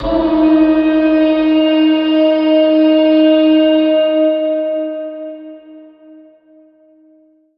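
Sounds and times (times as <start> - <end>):
reverb-processed alarm siren: 0.0 - 5.4.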